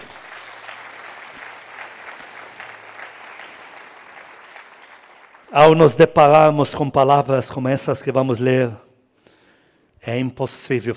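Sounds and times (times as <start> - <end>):
audience applause: 0.0 - 5.5
speech: 5.5 - 8.9, 10.0 - 10.9.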